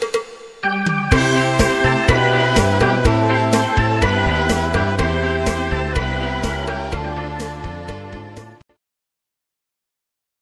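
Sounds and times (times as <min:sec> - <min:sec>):
cha cha music: 0:01.1 - 0:08.6.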